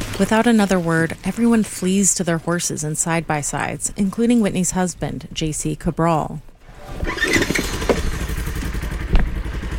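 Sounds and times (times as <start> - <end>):
speech: 0.2 - 7.4
chainsaw running: 6.9 - 9.7.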